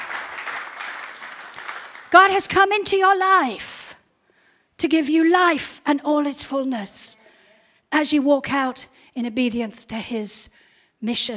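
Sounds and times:
audience applause: 0:00.0 - 0:02.3
speech: 0:02.1 - 0:03.8, 0:04.8 - 0:07.2, 0:07.9 - 0:11.3.

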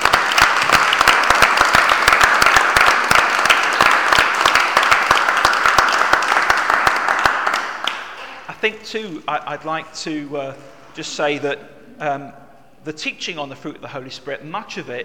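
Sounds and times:
audience applause: 0:00.0 - 0:08.5
speech: 0:08.6 - 0:15.0.

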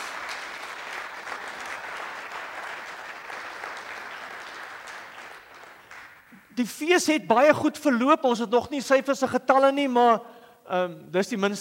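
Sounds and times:
audience applause: 0:00.0 - 0:06.3
speech: 0:06.6 - 0:11.5.

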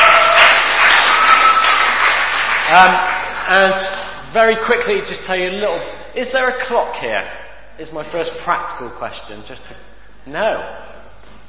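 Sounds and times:
audience applause: 0:00.0 - 0:03.8
speech: 0:02.8 - 0:10.9.

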